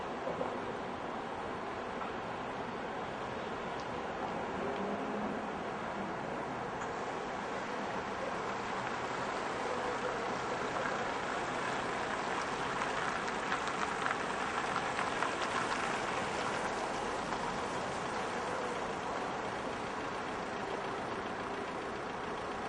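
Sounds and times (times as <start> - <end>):
cars and other vehicles driving by on road at 25 mph at town intersection: 0.1 - 22.6.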